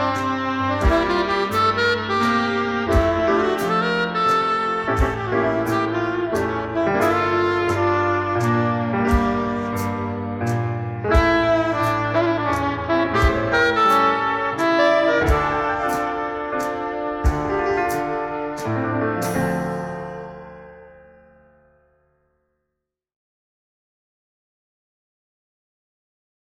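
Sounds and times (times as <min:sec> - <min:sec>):
drums: 0:00.0 - 0:20.6
saxophone duet: 0:00.0 - 0:20.6
piano: 0:00.0 - 0:22.4.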